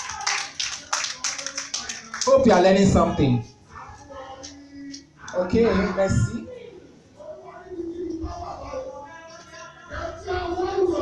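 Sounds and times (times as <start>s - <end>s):
audience clapping in a steady rhythm: 0.0s - 2.6s
speech: 2.3s - 3.6s, 5.4s - 6.5s.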